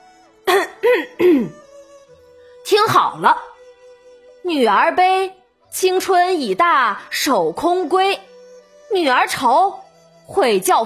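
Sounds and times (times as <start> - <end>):
throat clearing: 0.5 - 1.6
speech: 1.0 - 1.6, 3.1 - 3.5, 4.5 - 8.3, 8.9 - 10.8.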